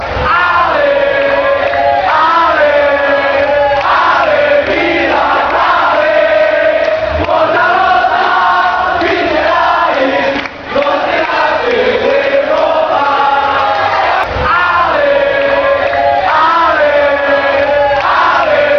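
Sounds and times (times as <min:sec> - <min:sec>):
fans chanting: 0:00.0 - 0:18.7.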